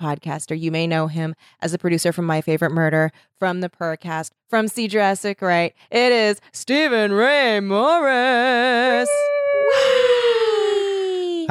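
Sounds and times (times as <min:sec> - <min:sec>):
speech: 0:00.0 - 0:10.0
voice imitating a cheering stadium crowd: 0:08.9 - 0:11.4.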